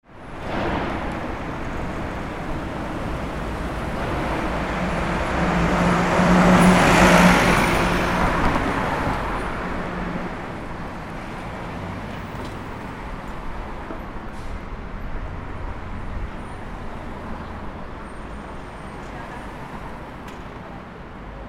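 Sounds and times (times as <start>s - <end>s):
street corner ambience: 0.0s - 21.4s.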